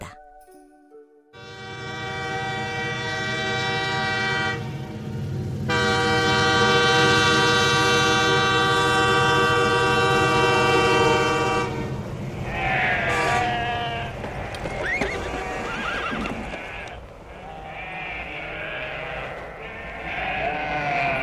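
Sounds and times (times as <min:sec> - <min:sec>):
train horn blasts: 0:01.4 - 0:12.3, 0:13.0 - 0:14.2
train rumbling past: 0:01.4 - 0:21.2.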